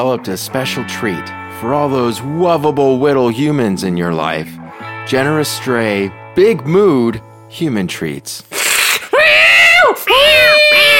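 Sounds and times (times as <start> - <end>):
speech: 0.0 - 8.5
cat screeching in harsh high-pitched yowls: 8.6 - 10.9.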